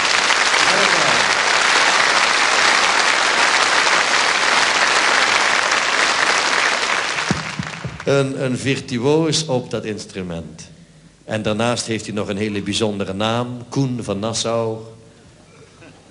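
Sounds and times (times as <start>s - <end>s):
audience applause: 0.0s - 8.2s
speech: 8.1s - 15.0s.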